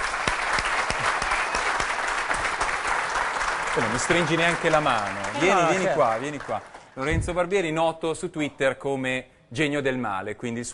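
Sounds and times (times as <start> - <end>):
audience applause: 0.0 - 7.0
speech: 3.8 - 10.7.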